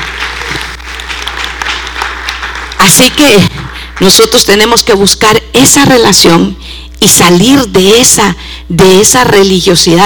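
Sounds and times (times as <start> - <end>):
audience clapping hands: 0.0 - 4.5
speech: 2.8 - 10.0.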